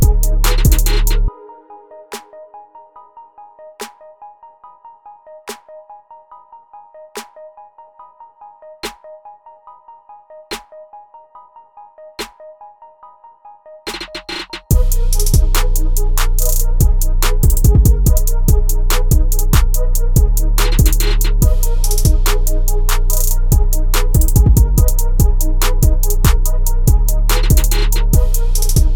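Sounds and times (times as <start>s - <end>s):
hip hop trap beat: 0.0s - 1.3s, 13.9s - 28.9s.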